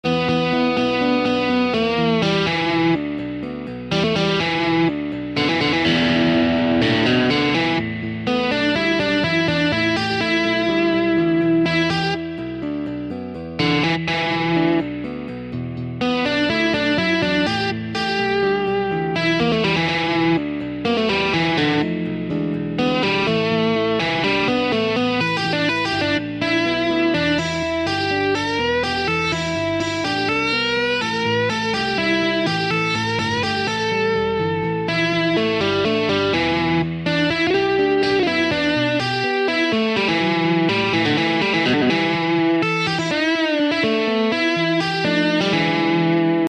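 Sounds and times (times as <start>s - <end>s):
easy blues solo in E: 0.0s - 46.4s.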